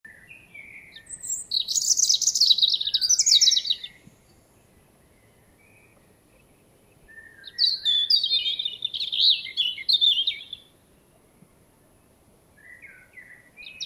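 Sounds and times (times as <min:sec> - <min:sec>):
European robin singing: 0:00.1 - 0:13.8.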